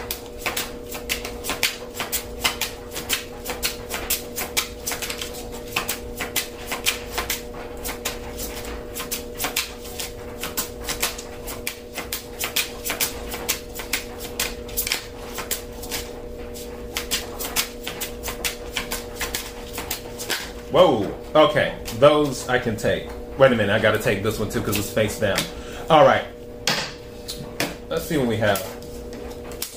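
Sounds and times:
faint steady hum: 0.0s - 29.7s
deck of cards being shuffled: 0.1s - 20.7s, 28.5s - 29.7s
speech: 20.8s - 26.3s, 28.1s - 28.7s.

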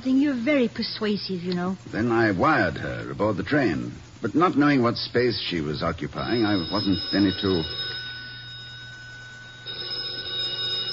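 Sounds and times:
speech: 0.0s - 8.0s
telephone ringing: 6.1s - 10.9s.

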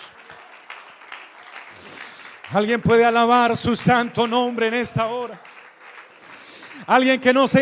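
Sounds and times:
audience applauding: 0.0s - 7.6s
speech: 2.5s - 5.5s, 6.8s - 7.6s.

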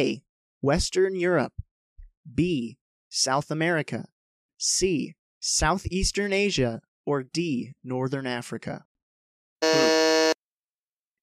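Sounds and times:
speech: 0.0s - 1.6s, 2.3s - 8.9s, 9.6s - 9.9s
quiz buzzer: 9.6s - 10.4s.

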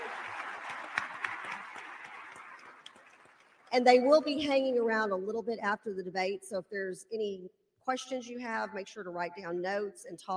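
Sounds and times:
audience applause: 0.0s - 3.7s
speech: 3.7s - 10.3s.

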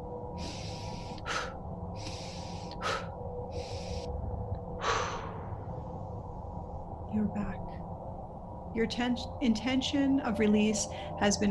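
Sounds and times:
low hum: 0.0s - 11.4s
deep fast breaths in through the nose, out through the mouth: 0.3s - 6.8s
speech: 7.2s - 7.7s, 8.8s - 11.4s.

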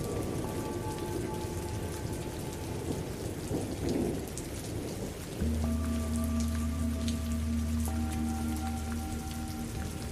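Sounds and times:
low thunder rumbling: 0.0s - 6.4s
steady dense rain: 0.0s - 10.1s.

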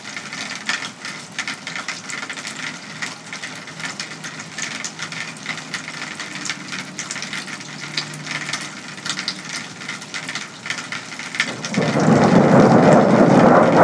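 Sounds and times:
heavy rain flooding gutters and downspouts outside a home in West Michigan: 0.0s - 13.8s
quick drips and taps: 0.1s - 11.8s
thunder rumble: 11.5s - 13.8s.

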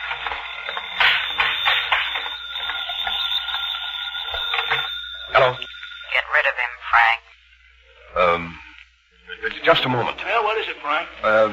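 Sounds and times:
telephone ringing: 0.0s - 7.2s
speech: 5.4s - 7.3s, 8.2s - 8.6s, 9.4s - 11.5s.

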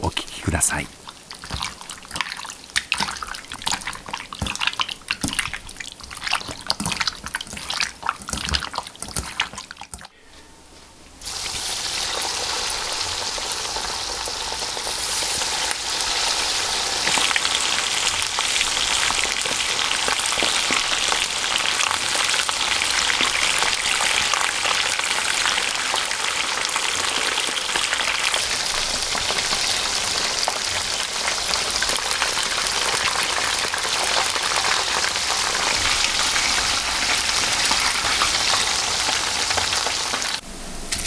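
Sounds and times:
speech: 0.0s - 1.6s
karaage chicken frying in oil: 0.3s - 10.2s, 11.2s - 41.0s.

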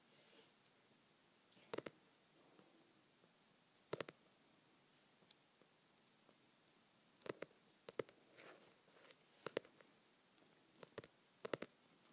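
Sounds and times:
soft steady hiss: 0.0s - 12.1s
fingers tapping on softcover books: 10.8s - 11.7s.

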